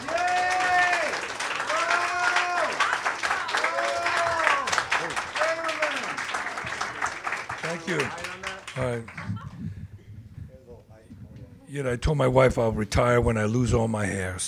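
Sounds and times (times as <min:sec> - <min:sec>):
people whooping: 0:00.0 - 0:07.0
audience applause: 0:00.0 - 0:09.5
speech: 0:07.9 - 0:09.4, 0:11.7 - 0:14.4.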